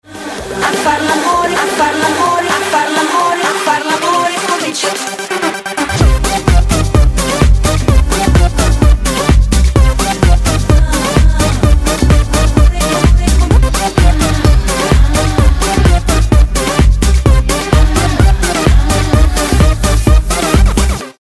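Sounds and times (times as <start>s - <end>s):
music beat: 0.1s - 21.1s.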